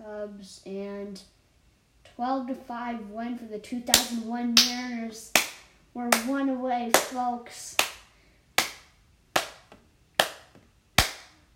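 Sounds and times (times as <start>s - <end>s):
speech: 0.3s - 1.4s, 2.1s - 5.4s, 6.0s - 7.8s
hands clapping loudly: 4.0s - 4.8s, 5.4s - 6.3s, 6.9s - 7.2s, 7.8s - 11.4s.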